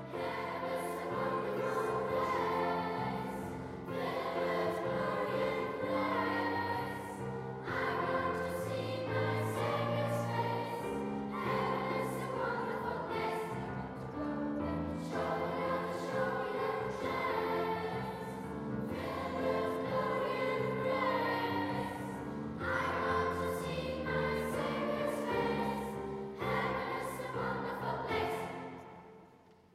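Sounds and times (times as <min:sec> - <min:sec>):
lower-school children's choir singing: 0:00.0 - 0:29.6.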